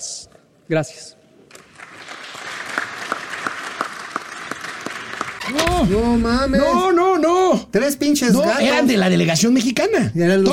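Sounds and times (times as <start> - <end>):
speech: 0.7 - 1.2, 5.5 - 10.5
applause: 1.5 - 5.5.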